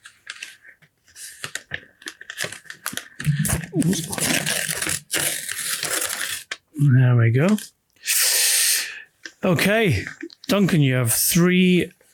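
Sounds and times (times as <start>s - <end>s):
golden envelope being torn open: 1.2s - 6.6s
speech: 3.8s - 4.4s, 6.8s - 7.8s, 9.4s - 12.0s.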